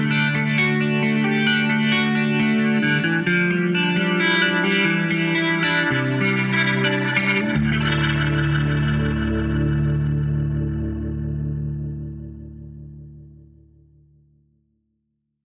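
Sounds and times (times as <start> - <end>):
electric guitar through a Leslie speaker with EQ and compression: 0.0 - 13.8.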